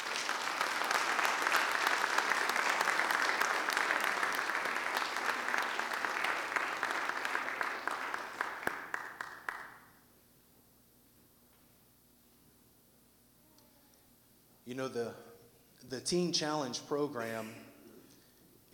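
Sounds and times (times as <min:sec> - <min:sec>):
audience applause: 0:00.0 - 0:09.8
speech: 0:14.7 - 0:15.3, 0:15.9 - 0:17.7.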